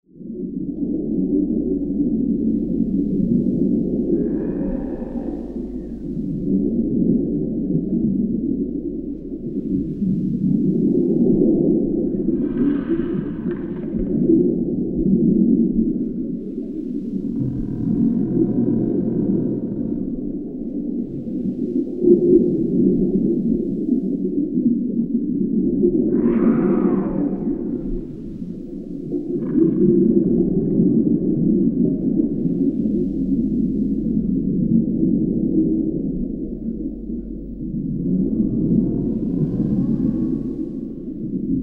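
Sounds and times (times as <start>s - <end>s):
sea monster: 0.1s - 41.6s.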